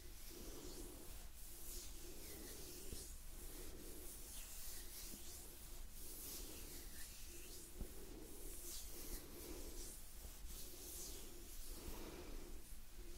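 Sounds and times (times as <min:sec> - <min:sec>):
gentle hands rubbing and brushing: 0:00.0 - 0:13.1.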